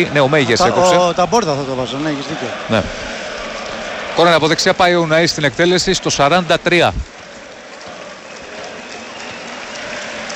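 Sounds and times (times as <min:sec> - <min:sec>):
speech: 0:00.0 - 0:03.2, 0:04.2 - 0:07.1
stadium crowd applauding: 0:00.0 - 0:10.3.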